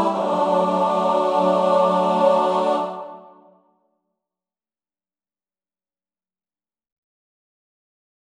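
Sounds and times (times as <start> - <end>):
three-part mixed choir singing: 0.0 - 3.6.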